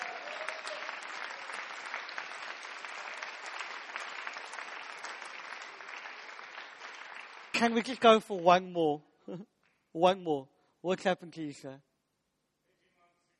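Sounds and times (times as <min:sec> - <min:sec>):
audience clapping happily: 0:00.0 - 0:08.4
speech: 0:07.6 - 0:11.9.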